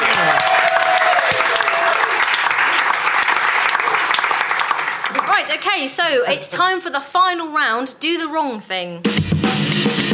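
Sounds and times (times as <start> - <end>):
crowd clapping: 0.0 - 6.2
speech: 5.5 - 9.3.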